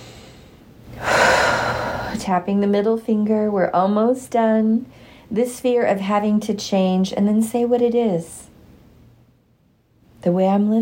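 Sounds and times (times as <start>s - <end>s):
big deep breath during a finger-tapping exercise: 0.0s - 2.2s
speech: 2.2s - 8.4s, 10.2s - 10.7s.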